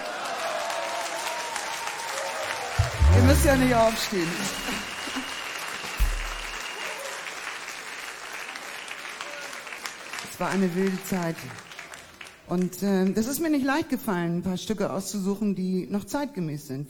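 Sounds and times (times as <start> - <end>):
audience applause: 0.0 - 12.4
speech: 3.2 - 4.9, 10.4 - 11.7, 12.5 - 16.8.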